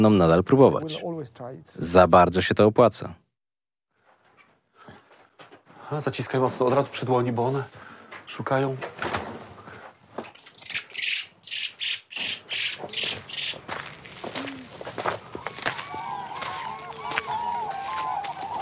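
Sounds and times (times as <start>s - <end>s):
speech: 0.0s - 3.2s, 5.9s - 9.1s
cranes calling: 10.2s - 13.7s, 15.3s - 18.6s
larks calling: 10.2s - 13.7s, 16.2s - 18.6s.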